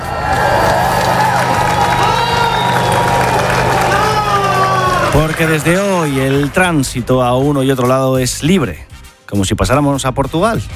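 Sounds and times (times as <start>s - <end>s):
crowd cheering at border opening: 0.0s - 7.6s
clapping: 0.1s - 6.8s
whistles: 1.0s - 5.2s
speech: 5.2s - 10.7s.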